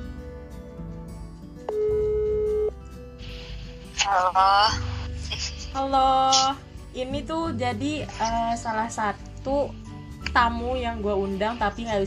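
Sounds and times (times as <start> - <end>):
telephone tones while calling a guest: 1.7 - 2.8
speech: 4.1 - 4.9, 5.7 - 9.8, 10.3 - 12.0.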